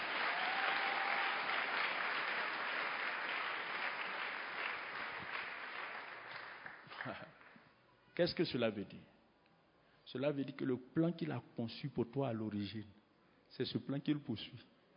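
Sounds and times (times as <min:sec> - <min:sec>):
church congregation clapping during a worship service: 0:00.0 - 0:07.6
speech: 0:07.0 - 0:07.4, 0:08.2 - 0:09.1, 0:10.1 - 0:14.7.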